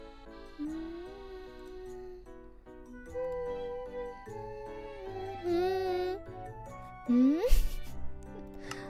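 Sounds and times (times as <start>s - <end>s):
person humming: 0.4s - 2.4s, 3.0s - 6.4s, 7.1s - 8.0s.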